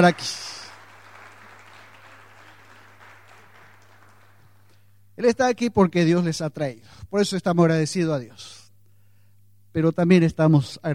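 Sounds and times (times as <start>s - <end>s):
speech: 0.0s - 0.5s, 5.2s - 8.6s, 9.8s - 10.9s
audience applause: 0.0s - 4.7s
faint constant low hum: 0.0s - 10.9s.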